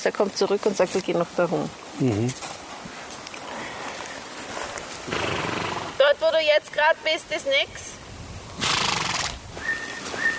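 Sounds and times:
speech: 0.0 - 2.6, 6.4 - 8.0
horse whinnying: 5.1 - 6.0, 8.6 - 9.4.

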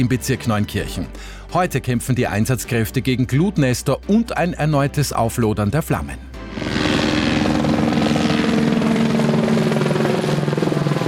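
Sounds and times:
speech: 0.0 - 7.1
firefighting helicopters flying over the Föhrenwald: 6.5 - 11.0.

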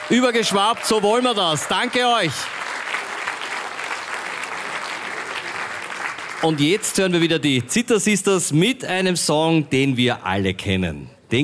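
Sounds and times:
audience applause: 0.0 - 7.0
speech: 0.1 - 2.6, 6.4 - 11.4.

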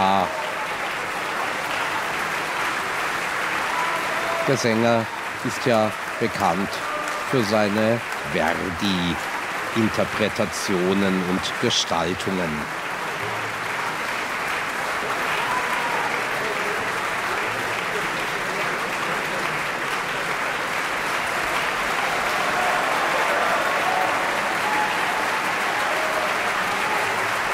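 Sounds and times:
audience applause at opera: 0.0 - 27.5
speech: 4.5 - 12.8.

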